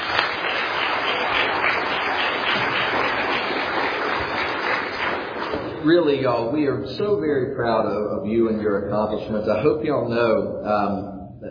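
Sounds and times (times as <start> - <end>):
audience applause for graduates: 0.0 - 6.0
speech: 5.8 - 11.4.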